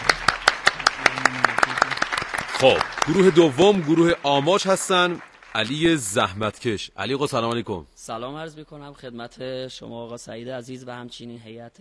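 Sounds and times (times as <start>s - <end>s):
audience clapping in honour of a music group at a singing contest: 0.0s - 6.5s
speech: 2.6s - 11.7s.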